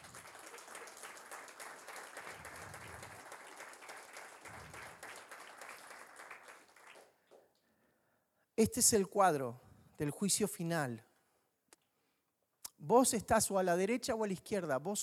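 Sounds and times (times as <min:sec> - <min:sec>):
audience applauding: 0:00.0 - 0:07.4
speech: 0:08.6 - 0:11.1, 0:12.9 - 0:15.0.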